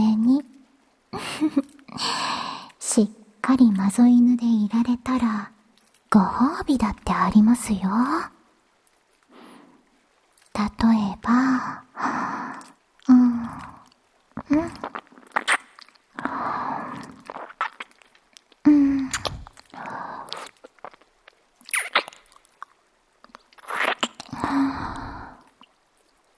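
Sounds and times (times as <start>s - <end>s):
speech: 1.1s - 2.1s, 3.0s - 8.4s, 10.6s - 12.3s, 14.5s - 15.0s
ASMR ear nibbling mouth sounds: 5.7s - 6.2s, 10.2s - 10.6s, 12.5s - 26.3s.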